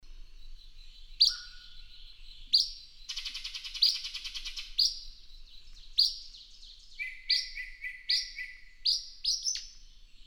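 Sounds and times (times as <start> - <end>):
bird chirping: 0.3 - 10.2.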